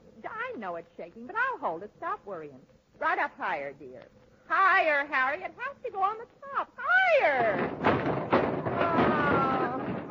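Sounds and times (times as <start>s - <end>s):
speech: 0.6s - 8.1s
Christmas tree toppling over with a thud: 7.4s - 10.0s.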